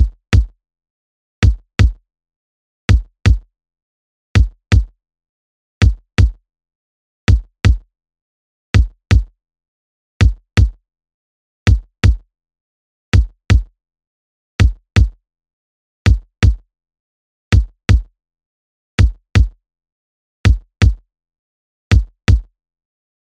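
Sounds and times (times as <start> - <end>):
dry kick drum: 0.0 - 0.6, 1.4 - 2.0, 2.9 - 3.5, 4.4 - 4.9, 5.8 - 6.4, 7.3 - 7.8, 8.8 - 9.3, 10.2 - 10.8, 11.7 - 12.2, 13.2 - 13.7, 14.6 - 15.2, 16.1 - 16.6, 17.6 - 18.1, 19.0 - 19.6, 20.5 - 21.0, 21.9 - 22.5.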